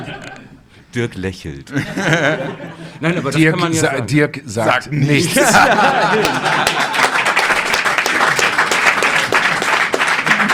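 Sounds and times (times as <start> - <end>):
laughter: 0.0 - 0.6, 1.7 - 3.5, 5.1 - 10.5
speech: 1.0 - 7.0
audience applause: 5.5 - 10.5.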